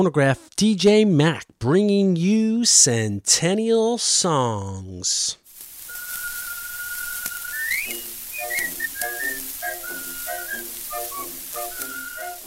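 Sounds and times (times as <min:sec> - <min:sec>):
speech: 0:00.0 - 0:05.4
steady surface hiss: 0:05.5 - 0:12.4
artistic whistling bird imitation: 0:05.9 - 0:12.4.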